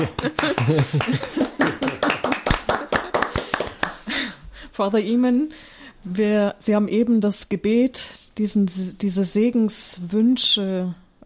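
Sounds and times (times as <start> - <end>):
speech: 0.0 - 1.8, 4.8 - 11.2
applause: 0.0 - 4.2.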